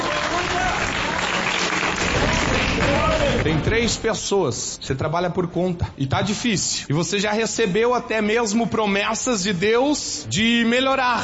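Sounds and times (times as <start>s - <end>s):
church audience applauding: 0.0s - 3.6s
speech: 3.4s - 11.2s.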